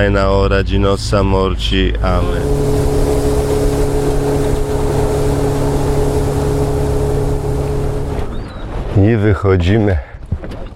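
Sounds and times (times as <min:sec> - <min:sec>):
speech: 0:00.0 - 0:03.1, 0:09.0 - 0:10.1
motorboat engine on water: 0:02.0 - 0:08.9.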